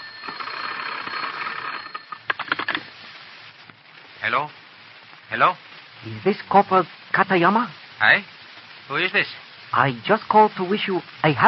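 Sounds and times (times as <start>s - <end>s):
field telephone being cranked: 0.0s - 3.0s
steady hiss on a thin narrow-band line: 0.0s - 11.4s
speech: 4.2s - 4.6s, 5.3s - 11.4s.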